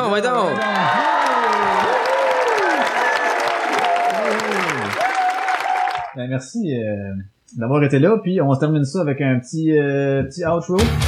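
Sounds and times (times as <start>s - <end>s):
audience applause: 0.0s - 6.2s
speech: 0.1s - 1.0s, 6.2s - 11.0s
excited cheers and whoops: 0.3s - 6.2s.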